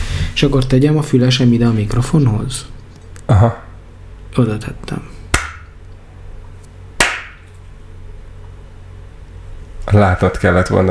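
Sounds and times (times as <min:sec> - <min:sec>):
speech: 0:00.4 - 0:02.7, 0:03.3 - 0:03.6, 0:04.4 - 0:05.1, 0:09.9 - 0:10.8
hand clapping: 0:05.3 - 0:05.7, 0:07.0 - 0:07.5.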